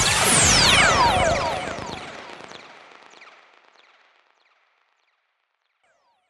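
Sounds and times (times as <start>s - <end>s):
psytrance zap: 0.0s - 2.7s.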